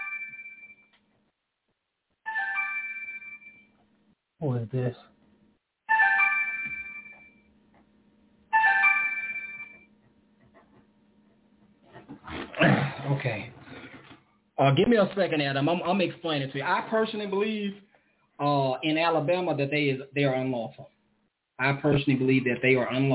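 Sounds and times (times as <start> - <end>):
phone ringtone: 0.0 - 0.9, 2.3 - 3.8, 5.9 - 7.5, 8.5 - 9.9
speech: 4.4 - 5.1, 14.6 - 20.8, 21.6 - 23.1.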